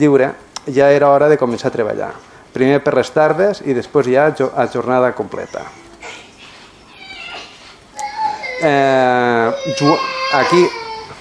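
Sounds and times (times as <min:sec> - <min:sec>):
speech: 0:00.0 - 0:05.8, 0:08.6 - 0:10.8
children crying: 0:05.4 - 0:11.1.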